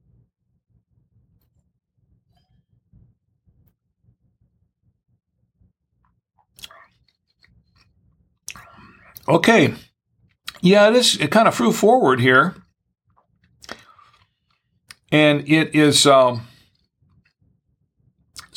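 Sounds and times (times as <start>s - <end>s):
soft mouth and lip noises while tasting wine: 6.4s - 7.6s, 13.4s - 14.2s, 18.4s - 18.5s
speech: 9.3s - 9.9s, 10.6s - 12.6s, 15.1s - 16.5s.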